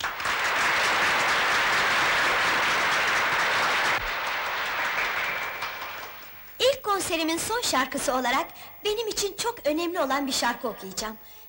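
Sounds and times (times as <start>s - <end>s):
audience applause: 0.0s - 6.4s
speech: 7.0s - 11.4s.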